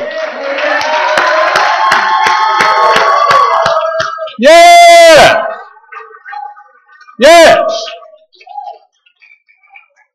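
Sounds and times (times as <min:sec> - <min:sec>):
people clapping: 0:00.0 - 0:06.4
speech: 0:04.4 - 0:05.3.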